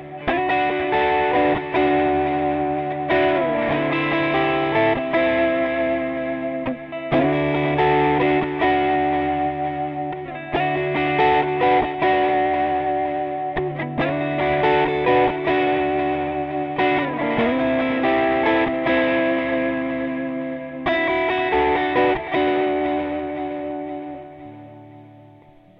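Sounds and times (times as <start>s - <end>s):
guitar riff: 0.0s - 25.7s.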